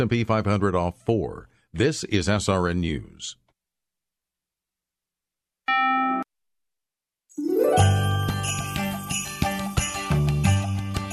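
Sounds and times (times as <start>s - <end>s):
speech: 0.0s - 3.4s
jingling bells: 7.4s - 11.1s.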